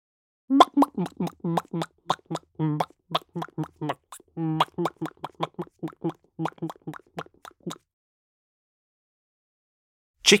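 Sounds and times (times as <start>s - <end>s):
human voice imitating a resting chicken clucking: 0.5s - 7.8s.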